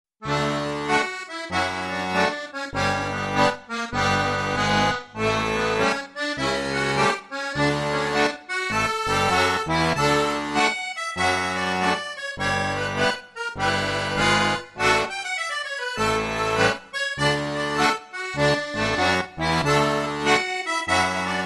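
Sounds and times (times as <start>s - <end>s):
verbunk dance music in D major: 0.4s - 21.4s.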